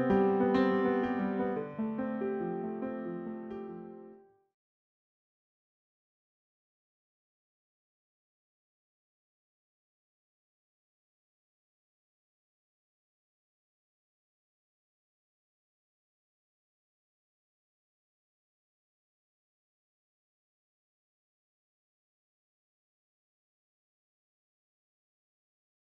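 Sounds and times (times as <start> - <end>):
theatre music: 0.0 - 4.6.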